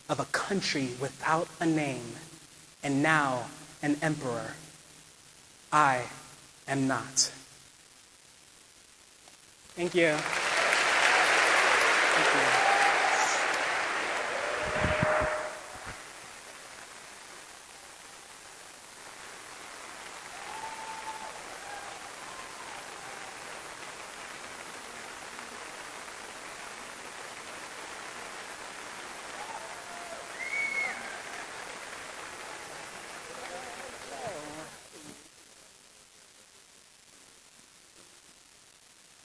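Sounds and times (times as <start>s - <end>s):
speech: 0.1s - 4.6s, 5.7s - 7.4s, 9.8s - 10.4s, 12.2s - 12.6s
audience applause: 10.0s - 34.9s.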